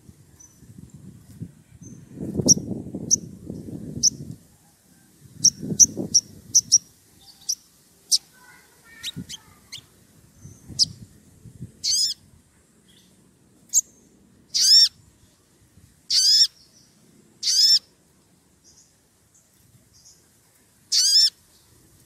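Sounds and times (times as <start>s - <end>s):
Oriental magpie-robin song: 1.8s - 4.3s, 5.4s - 11.1s, 11.8s - 12.2s, 12.9s - 15.0s, 16.1s - 17.9s, 20.9s - 21.7s.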